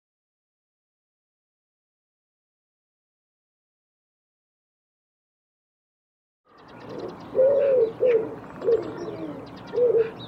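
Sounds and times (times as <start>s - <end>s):
bird cooing: 6.6s - 10.2s.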